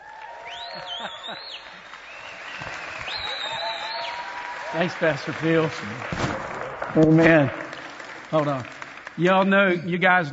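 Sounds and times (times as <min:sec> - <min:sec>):
high cheering whoops: 0:00.0 - 0:05.2
audience applause at a church gathering welcoming a speaker: 0:00.0 - 0:10.0
speech: 0:00.8 - 0:02.0, 0:04.7 - 0:06.3, 0:06.9 - 0:07.6, 0:08.3 - 0:10.3.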